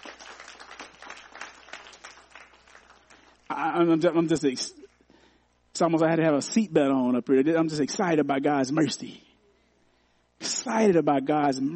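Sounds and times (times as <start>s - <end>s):
audience hand clapping: 0.0s - 3.6s
speech: 3.6s - 4.8s, 5.8s - 9.3s, 10.6s - 11.7s.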